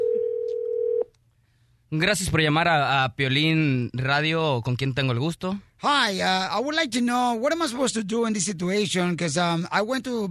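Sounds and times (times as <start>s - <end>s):
telephone ring tone: 0.0s - 1.1s
speech: 1.9s - 10.2s.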